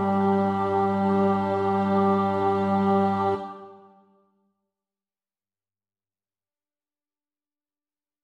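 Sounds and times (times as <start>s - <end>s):
bass: 0.0s - 3.6s.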